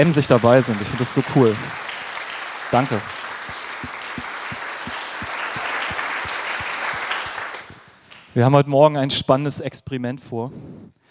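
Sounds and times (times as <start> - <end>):
speech: 0.0 - 1.8, 2.7 - 3.2, 8.4 - 10.8
audience applause: 0.0 - 7.9.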